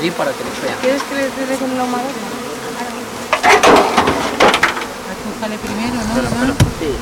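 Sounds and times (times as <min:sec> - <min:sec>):
speech: 0:00.0 - 0:03.8, 0:05.2 - 0:07.0
honeybees buzzing around a freshly opened hive: 0:00.0 - 0:07.0.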